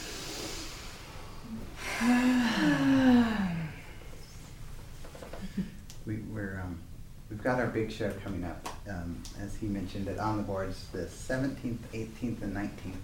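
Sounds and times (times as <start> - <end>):
audience voiced sighing: 1.8 - 4.0
speech: 7.4 - 13.0.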